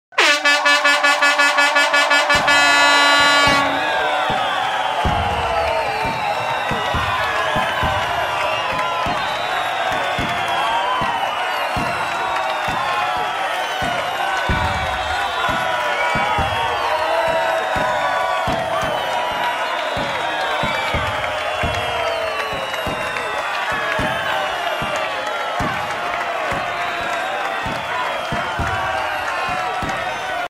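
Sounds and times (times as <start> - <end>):
crowd going wild: 0.1 - 30.4.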